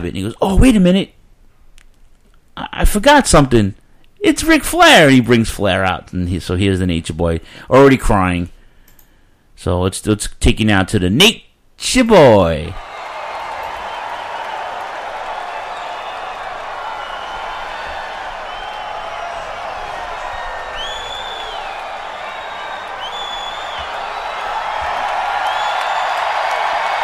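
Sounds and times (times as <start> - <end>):
speech: 0.0 - 1.2, 2.8 - 8.6, 9.6 - 12.9
wrestling crowd cheering and roaring: 12.8 - 27.0
sharp whistles: 12.9 - 27.0.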